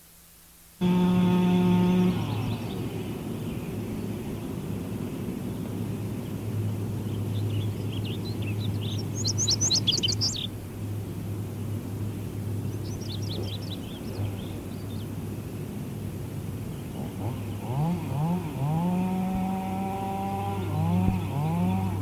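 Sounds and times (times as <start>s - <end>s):
indigo bunting singing high paired notes: 0.8s - 3.8s, 7.4s - 10.5s
low mechanical drone: 0.8s - 22.0s.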